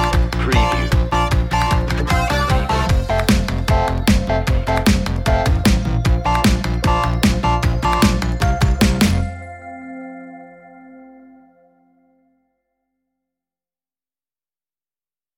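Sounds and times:
instrumental music without vocals: 0:00.0 - 0:12.3.

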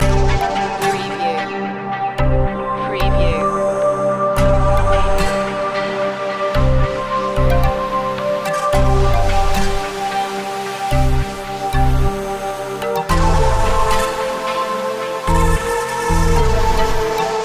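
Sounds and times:
deep chill music loop: 0:00.0 - 0:17.4.

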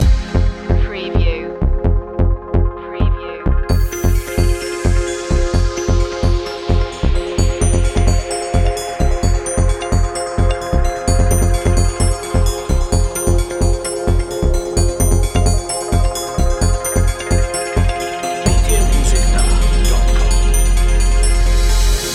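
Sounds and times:
electronic music loop: 0:00.0 - 0:22.1.

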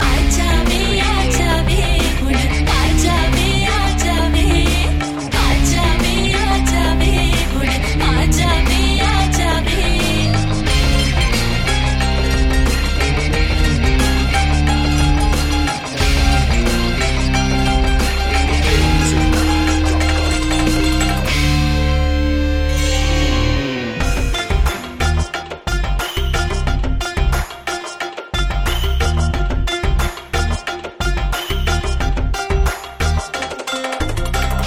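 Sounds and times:
sitar loop: 0:00.0 - 0:34.6.

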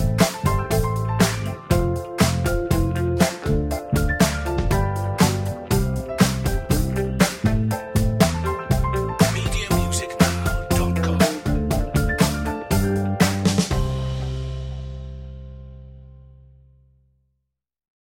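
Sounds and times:
joyful pop instrumental: 0:00.0 - 0:14.8.

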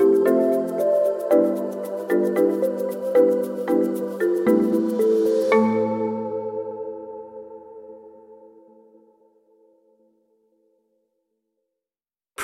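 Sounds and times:
shaker: 0:00.0 - 0:06.4.

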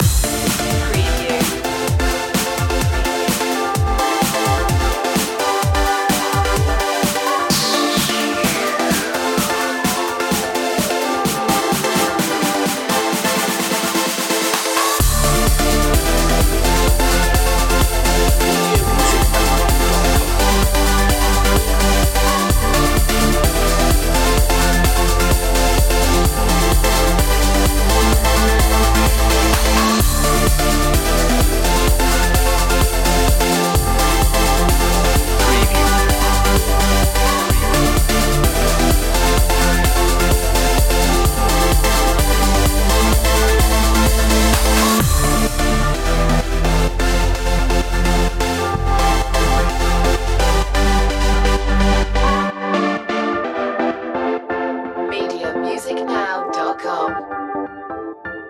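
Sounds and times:
trance music: 0:00.0 - 0:58.0.

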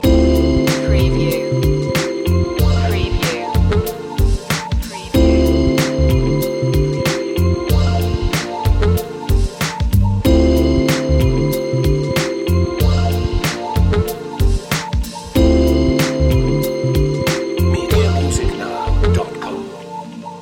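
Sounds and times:
music loop: 0:00.0 - 0:19.9.

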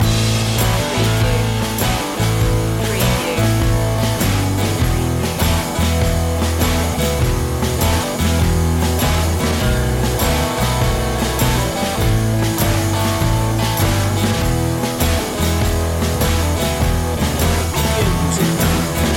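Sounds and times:
delta sound loop: 0:00.0 - 0:19.1.

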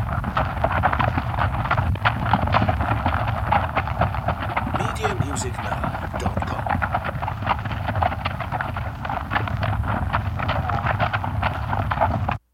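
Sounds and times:
cattle hooves thudding: 0:00.0 - 0:12.4
low rumbling background: 0:04.3 - 0:11.9.

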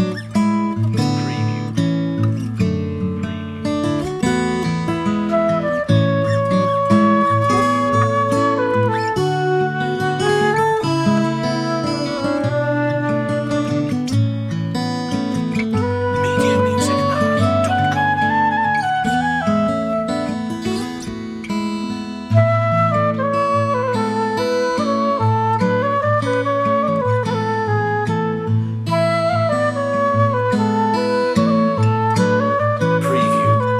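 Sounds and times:
guitar: 0:00.0 - 0:33.7
flute: 0:04.2 - 0:33.7.

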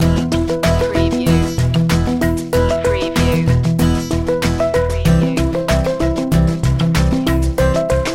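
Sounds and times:
music loop: 0:00.1 - 0:08.0.

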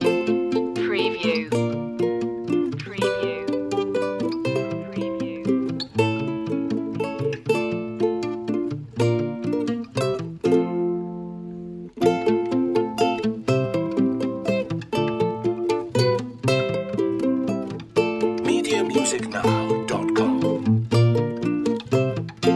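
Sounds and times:
Christmas ukulele loop: 0:00.0 - 0:22.5.

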